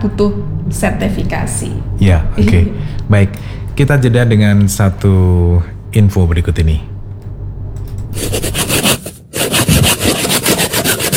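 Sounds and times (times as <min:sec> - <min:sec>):
speech: 0:00.0 - 0:06.9, 0:08.1 - 0:08.6
bamboo being cut and its tip sharpened: 0:08.2 - 0:11.1.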